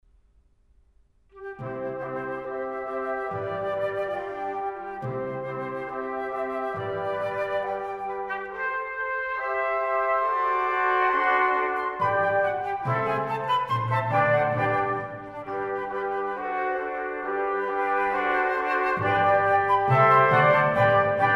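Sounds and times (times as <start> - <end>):
classical divertimento in C allegro: 1.3 - 21.3.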